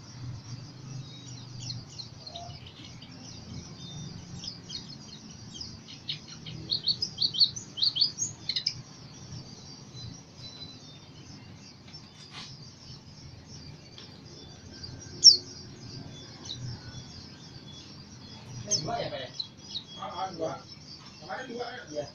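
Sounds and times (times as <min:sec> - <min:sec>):
white-eye twittering song in East Java: 0:00.0 - 0:22.1.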